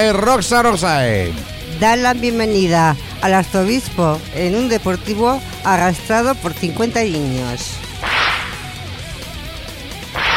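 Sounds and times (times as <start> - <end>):
speech: 0.0 - 7.8
whip crack sound effect: 8.0 - 8.7, 10.2 - 10.3.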